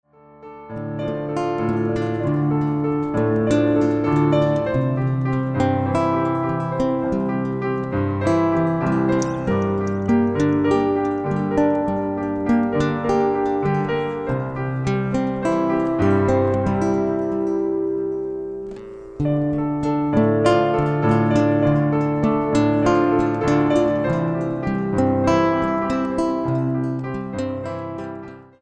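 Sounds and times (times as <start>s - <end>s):
instrumental piece: 0.4s - 28.6s.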